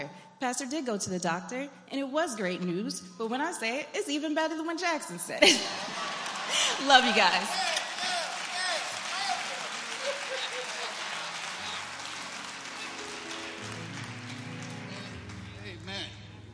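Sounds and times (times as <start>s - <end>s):
speech: 0.0s - 7.8s
laughter: 5.4s - 13.8s
audience clapping: 5.6s - 16.4s.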